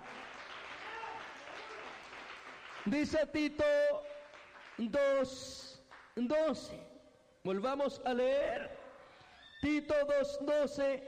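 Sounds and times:
church congregation applause: 0:00.0 - 0:06.2
speech: 0:02.8 - 0:04.1, 0:04.8 - 0:05.6, 0:06.2 - 0:08.8, 0:09.6 - 0:11.0.

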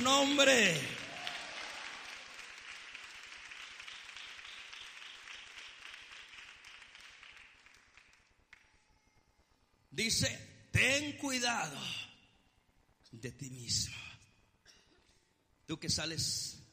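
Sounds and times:
speech: 0:00.0 - 0:01.0, 0:10.0 - 0:12.1, 0:13.1 - 0:14.2, 0:15.7 - 0:16.6
audience applause: 0:00.6 - 0:08.6.

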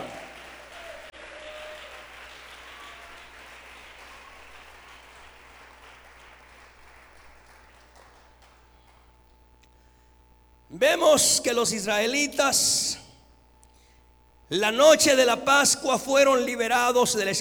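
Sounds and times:
audience applauding: 0:00.0 - 0:09.2
speech: 0:10.7 - 0:13.0, 0:14.5 - 0:17.4.

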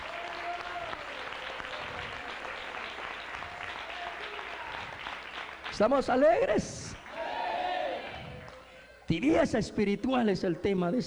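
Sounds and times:
audience clapping: 0:00.0 - 0:08.6
speech: 0:05.8 - 0:06.8, 0:09.1 - 0:11.0.

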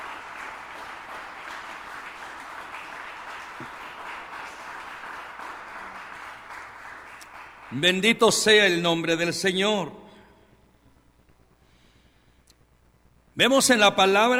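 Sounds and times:
audience applause: 0:00.0 - 0:08.3
speech: 0:07.7 - 0:10.0, 0:13.4 - 0:14.3.

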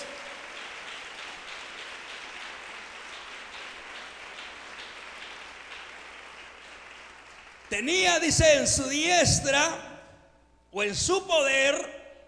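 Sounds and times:
audience applause: 0:00.0 - 0:07.9
speech: 0:07.7 - 0:09.8, 0:10.8 - 0:11.9.

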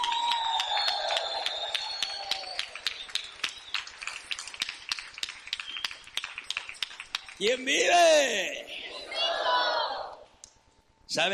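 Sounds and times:
sustained high whistles: 0:00.0 - 0:04.3, 0:05.5 - 0:06.2
audience clapping in celebration: 0:00.0 - 0:08.0
speech: 0:07.4 - 0:08.7, 0:11.1 - 0:11.3.

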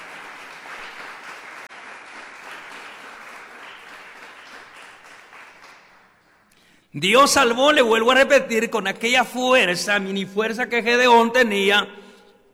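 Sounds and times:
audience applauding: 0:00.0 - 0:06.7
speech: 0:06.9 - 0:12.0.

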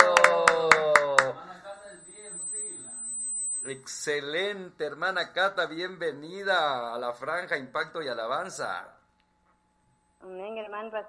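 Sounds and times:
sharp evenly spaced claps: 0:00.0 - 0:01.4
faint high tone: 0:00.8 - 0:04.5
speech: 0:03.7 - 0:09.0, 0:10.2 - 0:11.0.

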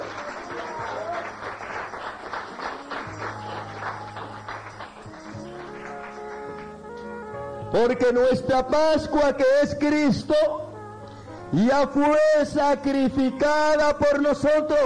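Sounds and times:
audience applause: 0:00.0 - 0:06.8
speech: 0:07.7 - 0:10.6, 0:11.5 - 0:14.8.

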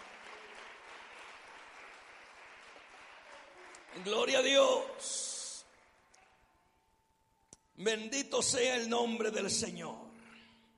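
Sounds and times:
audience applause: 0:00.0 - 0:04.8
speech: 0:04.0 - 0:05.3, 0:07.8 - 0:10.1.

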